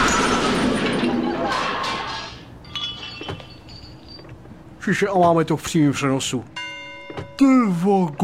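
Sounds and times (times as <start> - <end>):
car crash as Avia truck slams into Porsche: 0.0 - 3.8
faint glassy clinks and knocks: 0.0 - 4.6, 6.6 - 7.4
speech: 4.8 - 6.6, 7.4 - 8.2.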